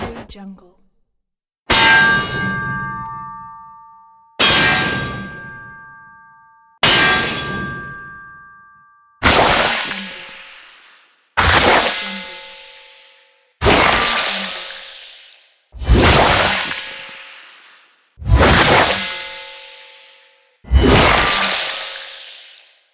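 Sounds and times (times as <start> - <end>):
weapon axe swing: 1.7 - 3.9, 4.4 - 22.8.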